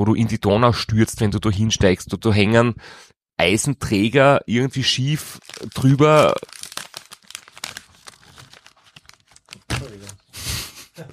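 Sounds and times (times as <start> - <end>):
speech: 0.0 - 6.6
chocolate wrapper rustling: 5.2 - 10.3.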